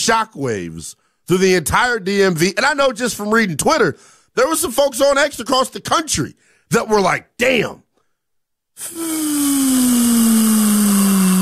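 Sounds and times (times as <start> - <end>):
speech: 0.0 - 7.8, 8.8 - 10.6
air let out of a balloon: 8.8 - 11.4.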